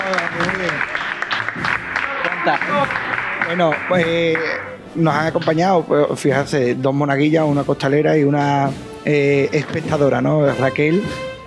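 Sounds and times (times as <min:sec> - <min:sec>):
audience applause: 0:00.0 - 0:04.8
speech: 0:02.4 - 0:11.3.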